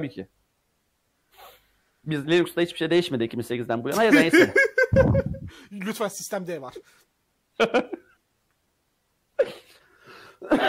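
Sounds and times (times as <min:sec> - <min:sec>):
speech: 0:00.0 - 0:00.4, 0:02.0 - 0:08.0
laughter: 0:04.0 - 0:05.5
person coughing: 0:09.4 - 0:09.8, 0:10.4 - 0:10.6.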